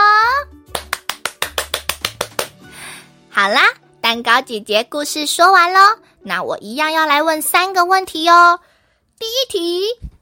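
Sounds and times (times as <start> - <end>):
children clapping hands: 0.7 - 2.6
speech: 3.4 - 10.2.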